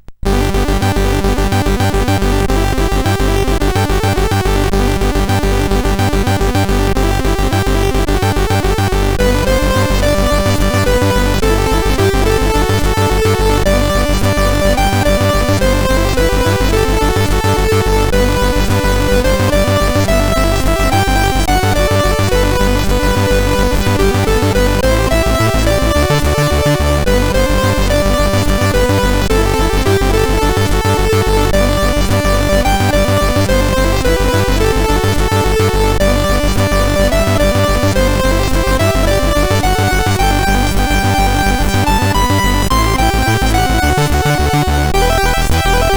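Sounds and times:
minimal chiptune music on SID CSG8580R5 chip: 0.0s - 45.9s.

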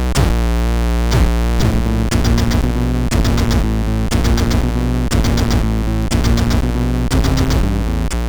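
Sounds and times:
chiptune music on a MOS6581R4 chip: 0.2s - 8.1s.

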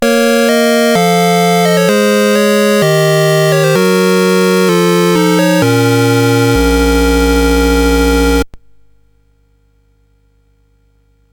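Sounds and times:
SID chiptune music on CSG8580R5 chip: 0.0s - 8.5s.

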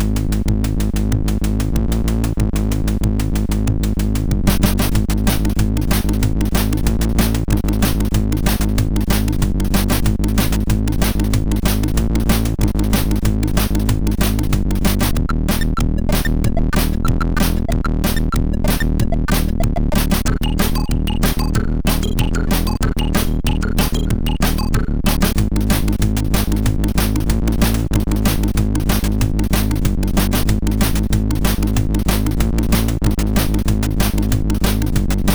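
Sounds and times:
hard tekno on a MOS6581R4 chip: 0.1s - 35.2s.

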